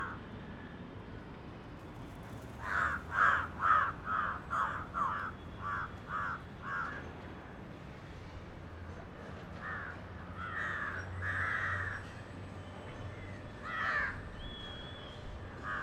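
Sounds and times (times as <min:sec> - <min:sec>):
crows cawing in Mumbai: 0:02.6 - 0:07.1, 0:09.6 - 0:12.1, 0:13.6 - 0:14.2, 0:15.6 - 0:15.8.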